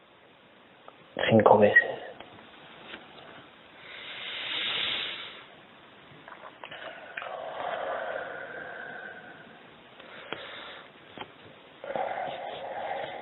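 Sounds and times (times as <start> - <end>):
speech: 1.2 - 2.0
slow deep breathing: 3.1 - 5.6, 6.7 - 11.0, 11.8 - 13.2.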